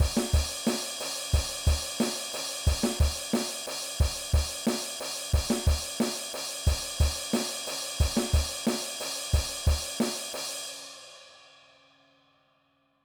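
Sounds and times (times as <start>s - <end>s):
rock drum beat: 0.0s - 10.4s.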